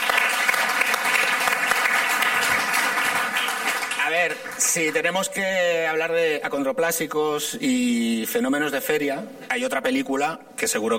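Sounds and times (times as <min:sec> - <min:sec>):
crowd applauding: 0:00.0 - 0:05.1
speech: 0:04.2 - 0:10.9.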